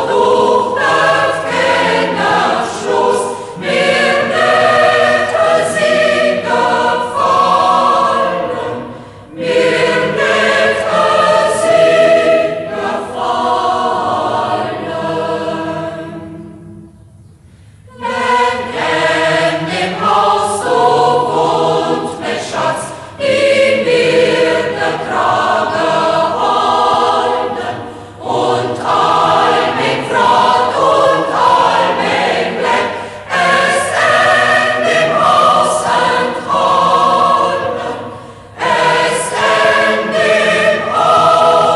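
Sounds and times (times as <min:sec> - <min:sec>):
chamber choir in Schäßburg local dialect: 0:00.0 - 0:17.2, 0:17.8 - 0:41.7.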